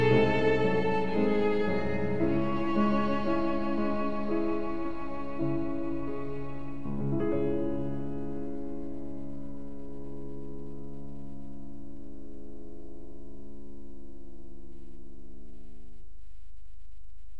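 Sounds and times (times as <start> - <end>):
violin solo: 0.0 - 8.8.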